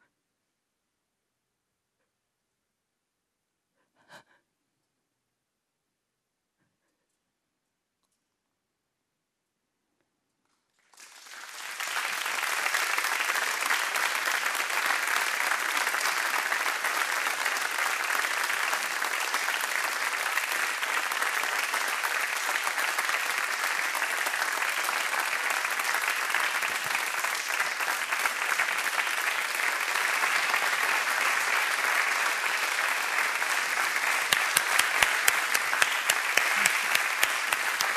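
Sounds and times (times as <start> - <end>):
audience applause: 10.8 - 37.9.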